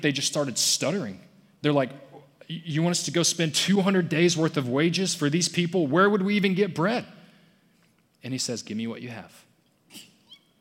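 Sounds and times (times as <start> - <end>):
speech: 0.0 - 7.2, 8.2 - 10.1
person sneezing: 9.9 - 10.4
faint high squeak: 9.9 - 10.5.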